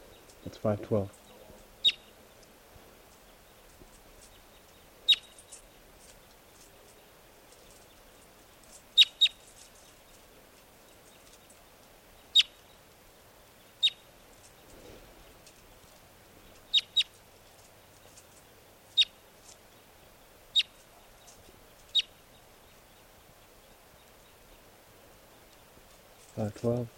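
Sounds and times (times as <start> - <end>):
wild bird chirping in trees: 0.0 - 14.9, 15.5 - 26.9
faint steady hum: 0.0 - 26.9
speech: 0.4 - 1.2, 26.5 - 26.9
rustling thump: 14.7 - 15.6.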